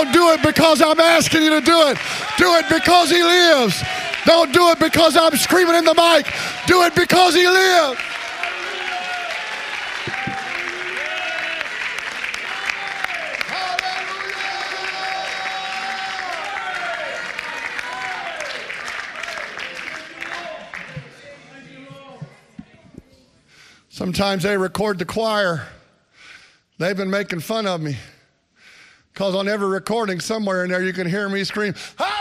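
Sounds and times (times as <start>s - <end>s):
audience clapping: 0.0s - 21.6s
speech: 0.1s - 8.1s, 24.0s - 25.8s, 26.8s - 28.1s, 29.2s - 32.1s.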